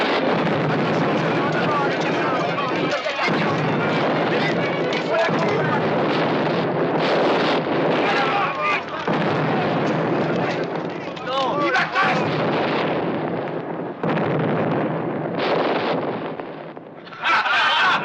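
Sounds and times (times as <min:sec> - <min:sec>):
constant roar of wind: 0:00.0 - 0:18.0
ship's cannon fire: 0:00.0 - 0:18.0
indistinct shouting voices: 0:00.7 - 0:06.4, 0:07.8 - 0:12.5
laughter: 0:17.0 - 0:18.0.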